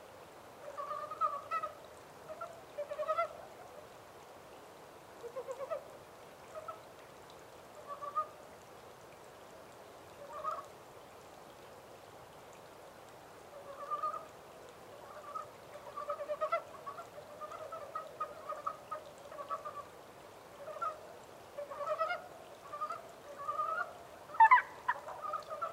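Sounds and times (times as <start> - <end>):
steady hiss: 0.0 - 25.7
montane brown frog croaking: 0.6 - 3.8, 5.2 - 7.0, 10.1 - 10.7, 13.5 - 14.4, 15.0 - 25.7.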